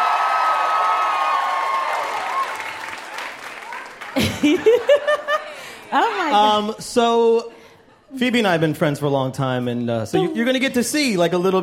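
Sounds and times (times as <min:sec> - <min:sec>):
audience cheering: 0:00.0 - 0:05.3
audience applause: 0:00.0 - 0:05.9
laughter: 0:04.1 - 0:06.7
speech: 0:04.4 - 0:05.2, 0:05.9 - 0:11.6.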